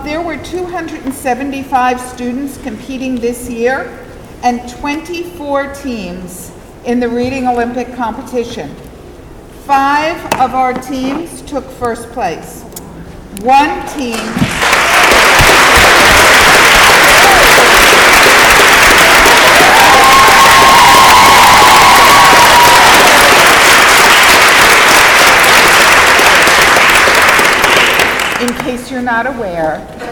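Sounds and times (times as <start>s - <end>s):
speech: 0.1s - 8.8s, 9.7s - 12.7s, 13.4s - 15.9s, 28.7s - 30.0s
large crowd applauding: 14.4s - 28.6s
cheering: 14.6s - 28.4s.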